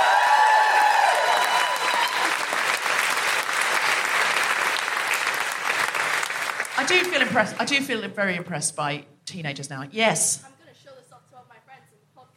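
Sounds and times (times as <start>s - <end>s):
live audience round of applause: 0.0s - 7.6s
speech: 6.9s - 10.6s.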